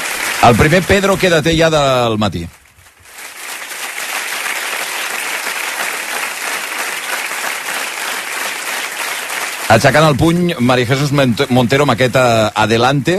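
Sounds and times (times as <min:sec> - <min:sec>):
applause at a party committee meeting: 0:00.0 - 0:12.1
speech: 0:00.4 - 0:02.6, 0:09.7 - 0:13.1.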